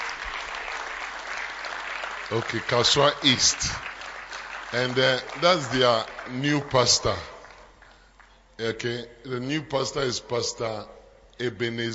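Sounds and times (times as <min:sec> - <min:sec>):
audience clapping: 0:00.0 - 0:08.4
speech: 0:02.3 - 0:03.9, 0:04.7 - 0:07.3, 0:08.6 - 0:11.9.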